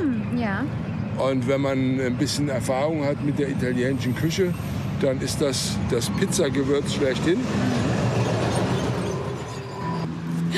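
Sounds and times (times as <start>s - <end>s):
speech: 0.4s - 8.0s
passing train: 2.5s - 10.4s.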